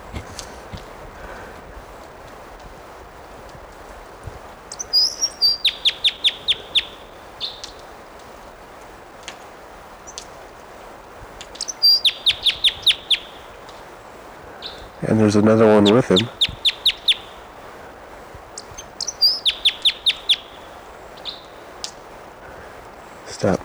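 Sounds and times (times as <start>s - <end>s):
wild bird singing: 4.6s - 7.9s, 10.0s - 10.4s, 11.4s - 23.6s
speech: 15.2s - 16.4s.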